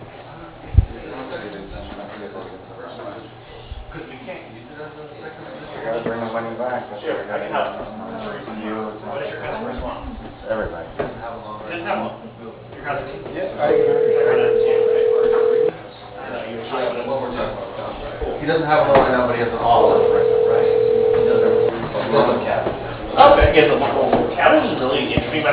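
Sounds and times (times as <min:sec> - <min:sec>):
people talking: 0:00.3 - 0:25.5
telephone ringback tones on a ShoreTel phone system: 0:13.7 - 0:15.7, 0:19.8 - 0:22.0.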